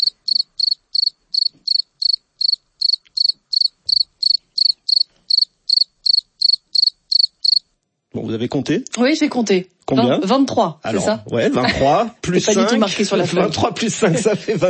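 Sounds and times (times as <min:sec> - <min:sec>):
cricket stridulating: 0:00.0 - 0:07.7
speech: 0:08.2 - 0:14.6
laughter: 0:11.4 - 0:14.6.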